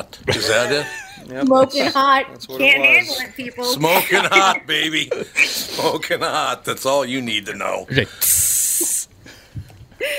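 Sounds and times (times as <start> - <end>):
speech: 0.0 - 8.5
laughter: 0.3 - 1.3, 3.7 - 6.4
sizzling hiss sound effect: 8.1 - 9.1.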